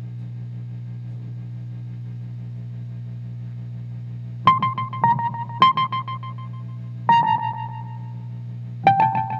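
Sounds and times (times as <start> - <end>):
Wurlitzer electric piano: 4.5 - 8.2, 8.8 - 9.3.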